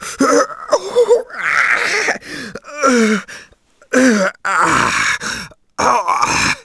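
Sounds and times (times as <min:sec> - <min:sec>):
person moaning: 0:00.2 - 0:03.3, 0:03.9 - 0:06.6.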